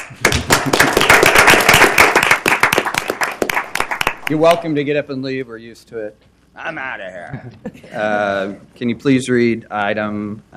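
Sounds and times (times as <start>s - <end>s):
audience clapping: 0.0s - 4.6s
speech: 4.3s - 10.5s.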